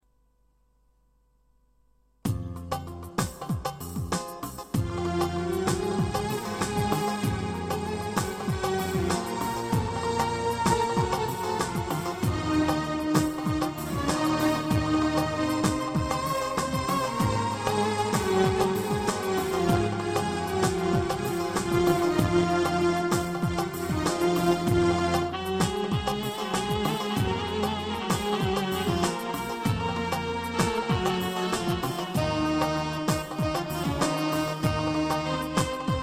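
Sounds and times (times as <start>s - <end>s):
string instruments: 2.4s - 36.0s
clarinet: 4.8s - 36.0s.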